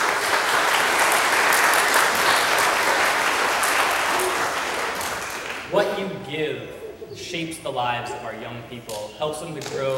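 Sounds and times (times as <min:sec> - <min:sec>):
audience applauding: 0:00.0 - 0:06.2
speech: 0:07.3 - 0:09.9.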